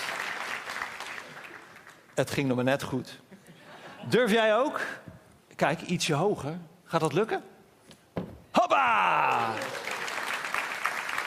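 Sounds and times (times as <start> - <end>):
audience clapping: 0.0 - 2.2, 8.7 - 11.2
speech: 2.2 - 3.3, 4.0 - 7.5, 8.7 - 9.8.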